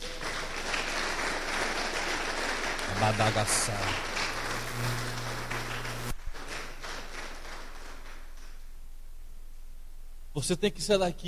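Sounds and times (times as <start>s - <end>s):
audience applauding: 0.0s - 8.5s
speech: 3.0s - 4.1s, 4.8s - 5.1s, 10.4s - 11.2s.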